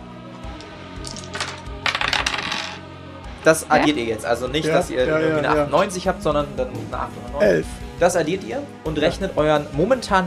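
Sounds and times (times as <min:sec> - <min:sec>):
dice rolling on a table: 0:01.0 - 0:02.8
speech: 0:03.4 - 0:10.2.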